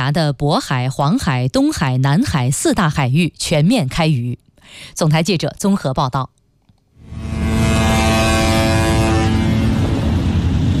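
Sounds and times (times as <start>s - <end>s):
speech: 0.0s - 6.4s
fishing boats sounding horns: 7.0s - 10.6s
low rumbling drone: 7.0s - 10.7s.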